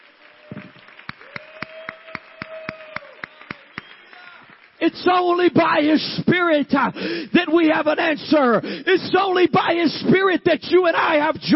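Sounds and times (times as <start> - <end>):
audience clapping hands: 0.0 - 5.9
speech: 4.8 - 11.5.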